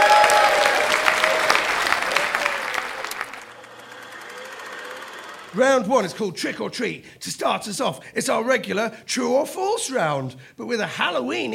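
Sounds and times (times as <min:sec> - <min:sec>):
audience applause: 0:00.0 - 0:06.2
speech: 0:05.5 - 0:11.5.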